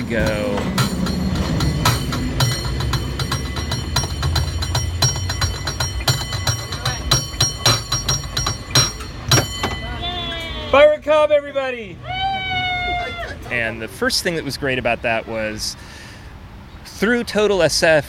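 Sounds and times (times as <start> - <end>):
cable car bell clanging: 0.0 - 10.8
speech: 0.1 - 0.8, 11.2 - 12.1, 13.5 - 16.0, 17.0 - 18.0.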